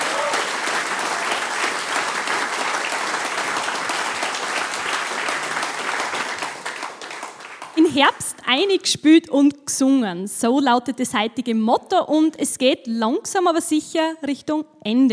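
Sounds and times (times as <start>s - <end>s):
audience applause: 0.0s - 8.2s
speech: 7.9s - 15.1s.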